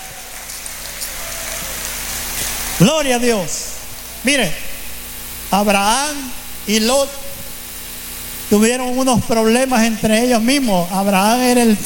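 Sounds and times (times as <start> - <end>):
audience clapping: 0.0 - 2.8
speech: 2.8 - 4.7, 5.5 - 7.3, 8.5 - 11.8.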